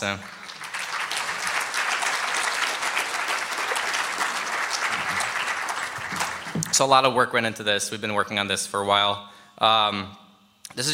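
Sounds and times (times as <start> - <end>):
speech: 0.0 - 0.4, 6.8 - 10.2, 10.8 - 10.9
audience clapping: 0.0 - 6.9.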